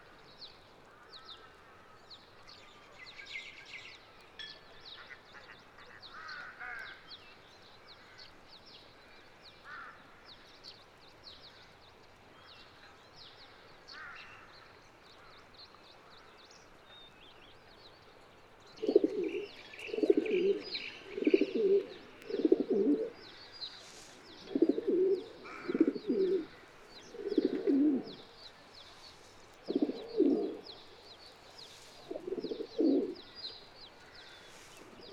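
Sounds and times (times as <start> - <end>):
Columbidae pigeons cooing: 18.8 - 23.5, 24.2 - 28.3, 29.6 - 31.0, 32.0 - 33.4, 34.2 - 35.1.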